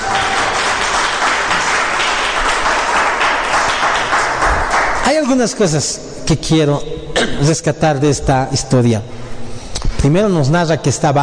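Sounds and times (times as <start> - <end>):
audience applause: 0.0 - 5.1
speech: 5.1 - 9.2, 10.0 - 11.2.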